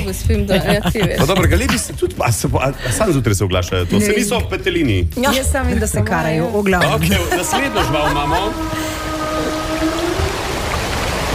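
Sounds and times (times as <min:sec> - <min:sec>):
speech: 0:00.0 - 0:09.5
low rumbling watery background: 0:00.0 - 0:11.3
laughter: 0:00.3 - 0:04.7, 0:06.8 - 0:09.6
whale call: 0:07.3 - 0:11.3.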